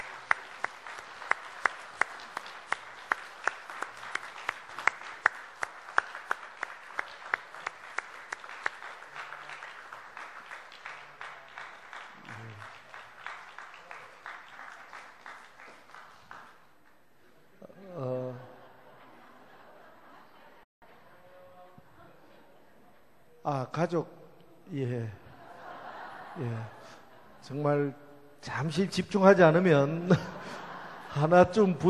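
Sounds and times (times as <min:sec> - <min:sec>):
audience clapping: 0:00.0 - 0:17.0
laughter: 0:17.6 - 0:21.2, 0:25.2 - 0:27.6, 0:29.8 - 0:31.8
speech: 0:23.7 - 0:25.2, 0:26.4 - 0:31.8.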